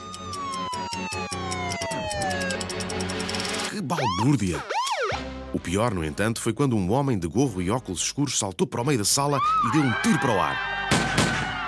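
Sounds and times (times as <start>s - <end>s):
police car siren wailing: 0.0s - 2.9s, 3.9s - 5.3s, 9.4s - 11.6s
speech: 3.8s - 4.8s, 5.5s - 11.2s.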